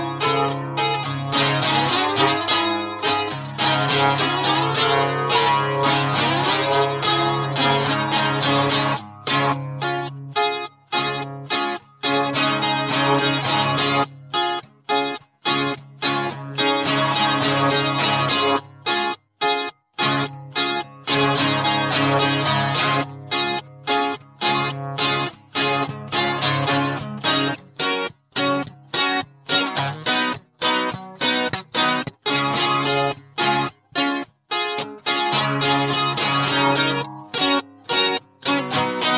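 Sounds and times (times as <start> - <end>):
acoustic guitar: 0.0 - 39.1.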